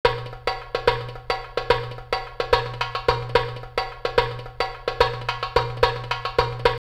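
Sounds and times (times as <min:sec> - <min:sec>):
world and ethnic drum loop: 0:00.0 - 0:06.8.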